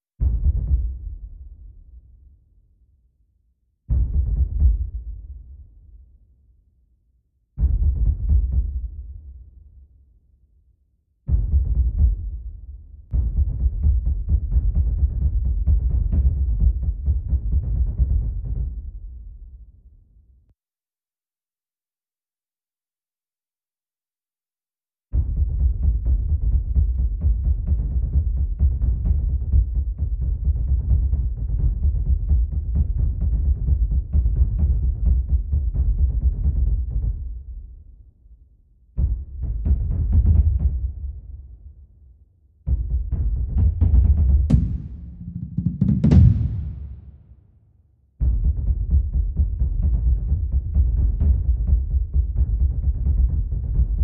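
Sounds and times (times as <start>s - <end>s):
bass drum track layer: 0.2s - 1.8s, 3.9s - 5.6s, 7.6s - 9.4s, 11.3s - 19.2s, 25.2s - 37.7s, 39.0s - 41.3s, 42.7s - 47.4s, 48.2s - 54.0s.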